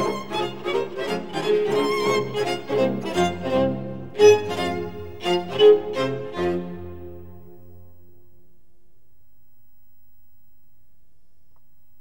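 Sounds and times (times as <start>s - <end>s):
string quartet in F minor: 0.0s - 7.8s.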